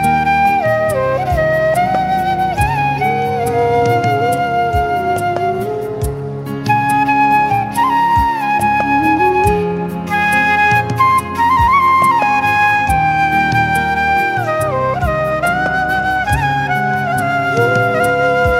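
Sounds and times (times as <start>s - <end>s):
instrumental flute playing: 0.0s - 18.5s.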